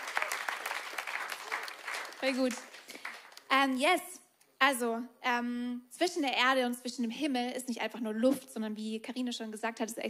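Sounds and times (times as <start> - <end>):
audience applause: 0.0 - 3.5
speech: 2.2 - 10.0.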